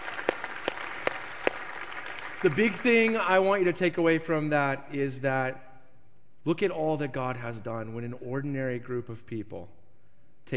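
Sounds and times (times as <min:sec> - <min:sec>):
audience clapping: 0:00.0 - 0:03.7
speech: 0:02.4 - 0:05.7, 0:06.4 - 0:09.8.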